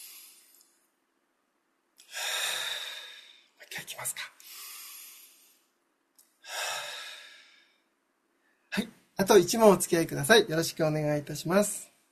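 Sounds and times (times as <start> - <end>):
deep breathing during a stretch break: 2.0 - 3.6, 4.4 - 5.7, 6.4 - 8.0
speech: 3.9 - 4.4, 8.8 - 11.9.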